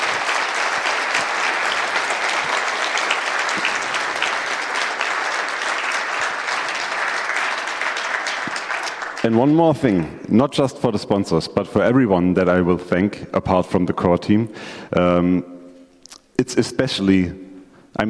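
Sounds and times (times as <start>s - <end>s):
audience applause: 0.0s - 10.1s
speech: 9.3s - 15.5s, 16.4s - 17.4s.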